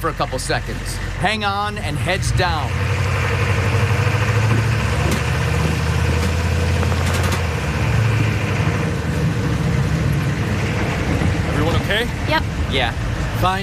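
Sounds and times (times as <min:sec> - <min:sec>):
speech: 0:00.0 - 0:03.0, 0:11.9 - 0:13.6
vehicle engine rumbling while driving across a road: 0:00.0 - 0:13.6.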